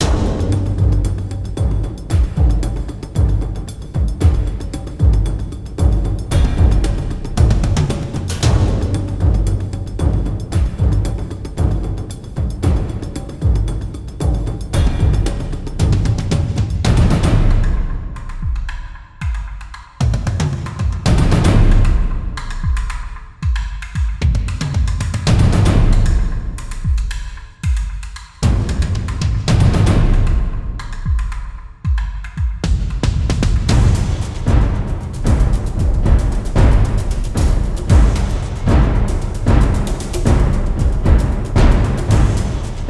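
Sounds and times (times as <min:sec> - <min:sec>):
combat drums: 0:00.0 - 0:42.8.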